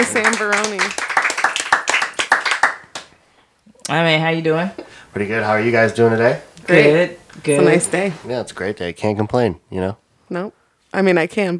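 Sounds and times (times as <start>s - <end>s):
speech: 0.0s - 1.0s, 3.9s - 11.5s
people clapping: 0.0s - 3.2s.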